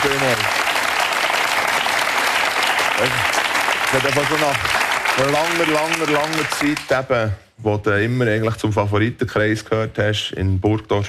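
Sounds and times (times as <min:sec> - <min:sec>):
audience applause: 0:00.0 - 0:07.0
speech: 0:00.1 - 0:00.6, 0:03.0 - 0:11.0.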